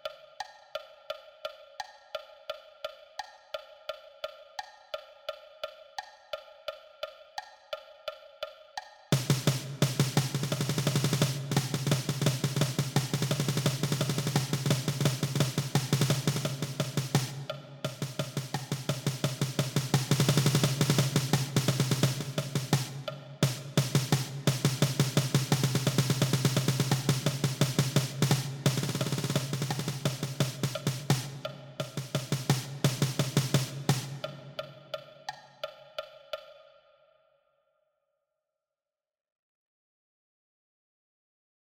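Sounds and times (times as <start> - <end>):
snare drum: 9.1 - 35.3.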